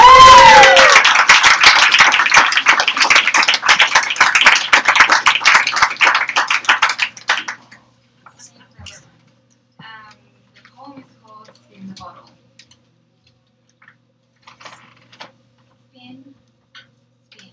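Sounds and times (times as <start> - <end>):
audience applause and clapping: 0.0 - 7.8.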